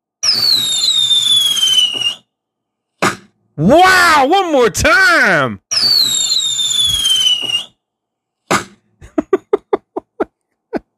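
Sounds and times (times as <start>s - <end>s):
fireworks sound effect whistle: 0.2s - 2.3s, 5.7s - 7.8s
speech: 0.4s - 1.7s, 3.6s - 6.2s
laughter: 9.0s - 10.3s.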